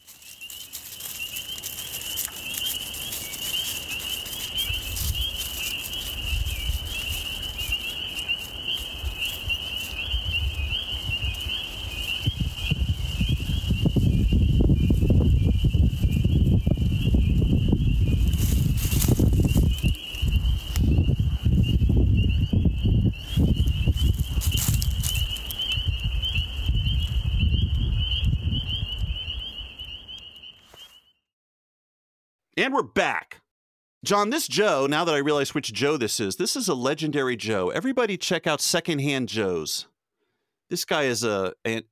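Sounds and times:
frogs calling: 0.1s - 31.1s
speech: 32.6s - 33.2s, 34.1s - 39.9s, 40.7s - 41.8s.

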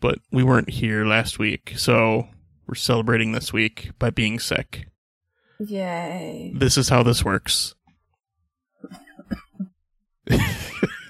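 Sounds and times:
speech: 0.0s - 4.9s, 5.6s - 7.8s, 8.8s - 9.4s, 10.3s - 10.9s
cough: 8.8s - 9.7s
laughter: 10.3s - 11.0s.

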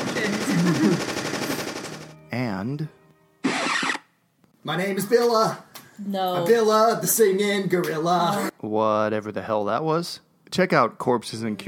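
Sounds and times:
machine gun fire: 0.0s - 2.1s
speech: 2.6s - 3.0s, 4.6s - 11.6s.

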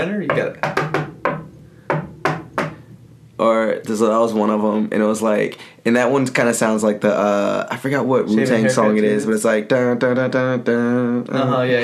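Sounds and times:
speech: 0.0s - 0.8s, 3.4s - 11.8s
knuckles knocking a rhythm on a table: 0.2s - 2.9s.

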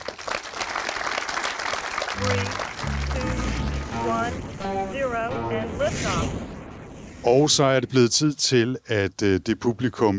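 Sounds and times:
audience applause in a hall: 0.0s - 4.0s
speech: 2.2s - 6.5s, 7.2s - 10.1s.

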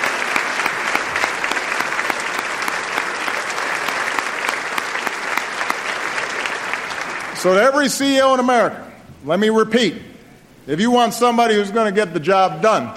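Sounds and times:
clapping into a microphone: 0.0s - 7.4s
speech: 7.4s - 12.9s.

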